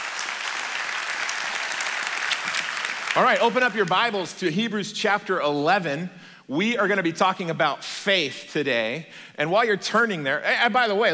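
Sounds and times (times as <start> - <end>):
audience applause: 0.0 - 4.2
speech: 3.2 - 11.1.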